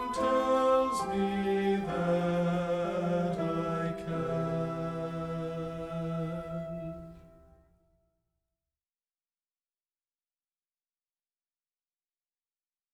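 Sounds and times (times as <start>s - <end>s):
music: 0.0s - 8.4s.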